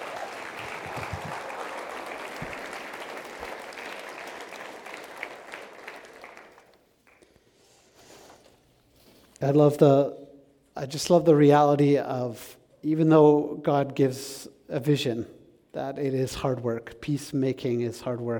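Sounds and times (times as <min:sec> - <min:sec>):
audience applause at a church gathering: 0:00.0 - 0:07.2
speech: 0:09.4 - 0:10.2, 0:10.8 - 0:18.3.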